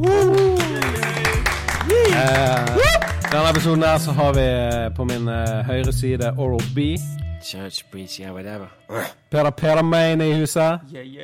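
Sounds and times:
applause: 0.0 - 4.0
loud tonal backing with steady thumping bass line: 0.2 - 7.2
speech: 3.3 - 11.2.

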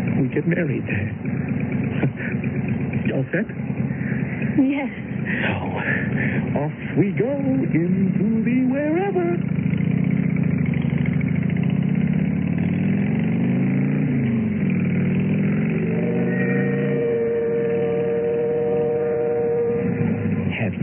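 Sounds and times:
motorcycle riding and pulling up: 0.0 - 20.8
speech: 0.4 - 3.8, 4.5 - 9.8.

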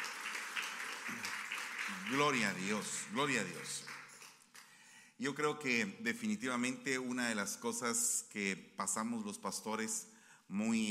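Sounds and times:
audience applause: 0.0 - 4.4
speech: 1.1 - 4.0, 5.2 - 10.8.

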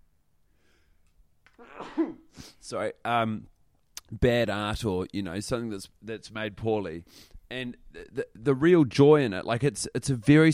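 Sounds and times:
sneeze: 1.6 - 2.3
speech: 1.6 - 10.5.

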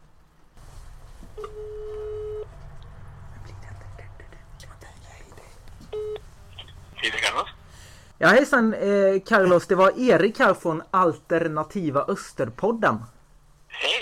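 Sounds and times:
telephone tone: 1.4 - 2.5, 5.9 - 6.2
hushed whispering voices: 3.3 - 5.7
speech: 8.2 - 13.2.

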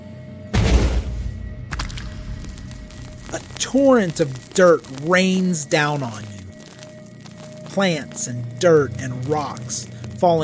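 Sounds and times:
thundering explosion: 0.5 - 3.6
speech: 3.3 - 6.4, 7.8 - 10.4.

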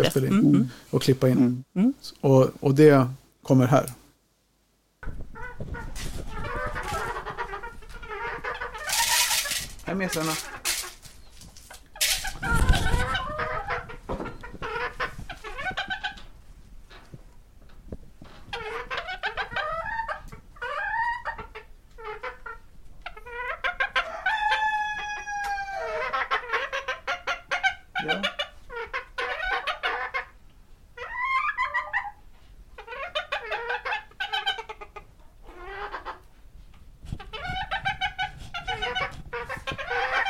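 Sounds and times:
speech: 0.0 - 4.0, 9.9 - 10.7
Modern English Game hens clucking: 5.0 - 16.4, 18.4 - 30.4, 31.0 - 36.4, 37.1 - 40.2.

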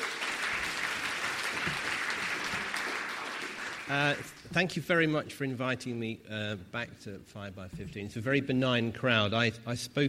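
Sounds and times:
audience applause: 0.0 - 4.5
speech: 3.9 - 10.0.

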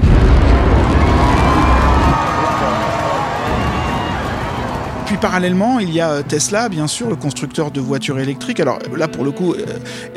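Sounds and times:
rocket launch rumble: 0.0 - 6.4
crowd cheering: 0.0 - 7.2
speech: 5.2 - 10.1.

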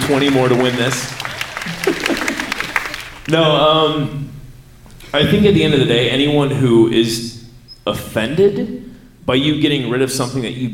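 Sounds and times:
audience applause: 0.0 - 3.4
laughter: 0.0 - 3.6, 5.2 - 6.0
speech: 0.1 - 1.8, 3.3 - 4.4, 5.1 - 10.7.

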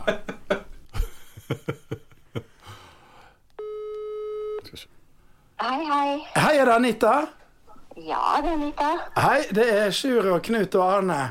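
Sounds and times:
speech: 0.0 - 0.3, 6.6 - 7.4, 8.0 - 11.3
laughter: 0.0 - 2.5
telephone ringing tone while calling: 3.6 - 4.6.

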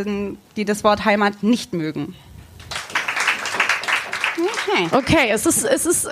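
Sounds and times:
speech: 0.0 - 2.3, 4.4 - 6.1
audience clapping: 2.6 - 5.6.

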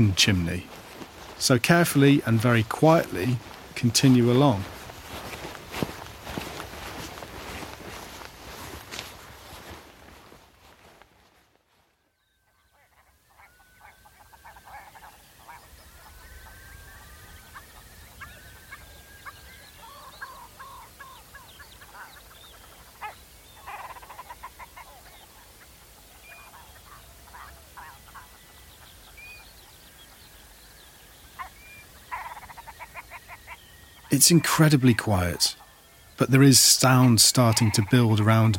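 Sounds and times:
speech: 0.0 - 0.8, 1.4 - 4.7, 34.2 - 35.6, 36.2 - 38.5
red grouse gurgling: 12.6 - 30.2, 31.3 - 38.5.

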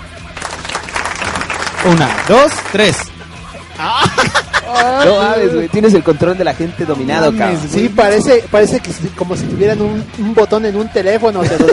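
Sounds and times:
audience applauding on cue: 0.4 - 3.1
laughter: 0.7 - 5.6, 11.3 - 11.7
speech: 1.8 - 3.1, 3.8 - 11.7.

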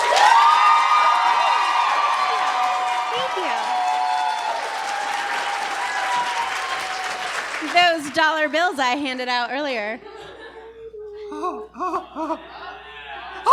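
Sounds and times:
audience clapping: 0.0 - 8.9
speech: 8.2 - 10.1, 11.4 - 12.5
laughter: 10.0 - 13.5.

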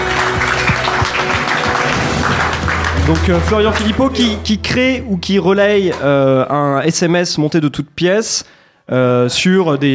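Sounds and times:
applause: 0.0 - 4.6
speech: 3.1 - 9.9.

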